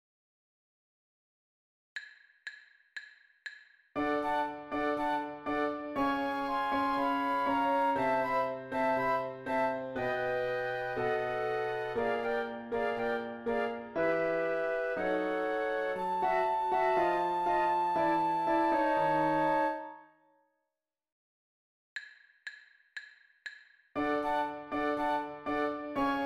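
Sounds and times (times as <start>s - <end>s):
ragtime music: 4.0s - 19.8s, 24.0s - 26.2s.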